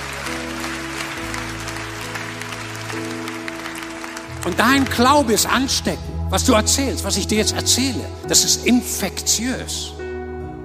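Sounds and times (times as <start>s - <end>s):
audience applauding: 0.0s - 6.0s
organ or keyboard chords: 0.0s - 10.6s
speech: 4.5s - 10.0s.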